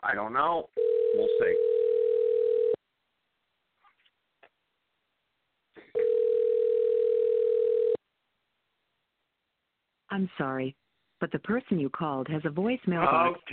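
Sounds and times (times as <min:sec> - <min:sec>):
speech: 0:00.1 - 0:01.7, 0:10.1 - 0:13.5
telephone dial tone: 0:00.8 - 0:02.8, 0:06.0 - 0:08.0.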